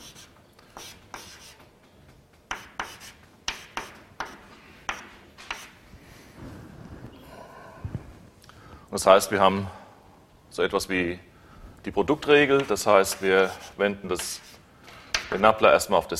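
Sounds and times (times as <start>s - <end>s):
writing on a board during a lecture: 0.0s - 5.8s, 12.5s - 14.6s
speech: 9.0s - 9.8s, 10.6s - 14.5s, 15.3s - 16.1s.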